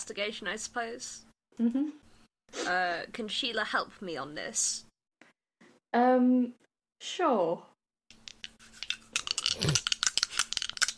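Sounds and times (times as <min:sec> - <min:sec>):
speech: 0:00.0 - 0:04.9, 0:05.9 - 0:07.7
dice rolling: 0:08.1 - 0:10.9.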